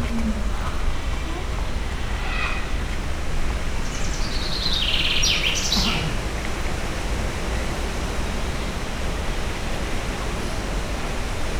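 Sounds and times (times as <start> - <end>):
leopard or jaguar: 0.0 - 2.6, 5.7 - 6.2
windy weather: 0.0 - 11.5.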